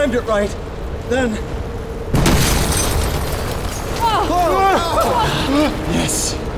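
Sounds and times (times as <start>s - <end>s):
speech: 0.0s - 1.6s, 4.1s - 6.4s
grenade exploding in a car: 2.1s - 4.3s.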